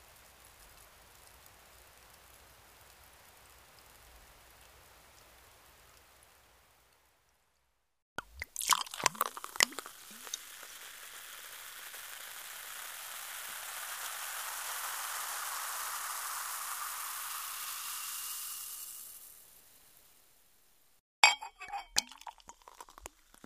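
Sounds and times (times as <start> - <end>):
champagne pouring into a glass: 8.2 - 19.6, 21.2 - 23.4.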